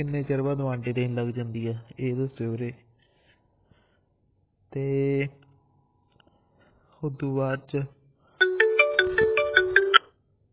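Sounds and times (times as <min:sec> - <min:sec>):
speech: 0:00.0 - 0:02.9, 0:04.7 - 0:05.4, 0:07.0 - 0:08.0
mobile phone ringtone: 0:08.4 - 0:10.1.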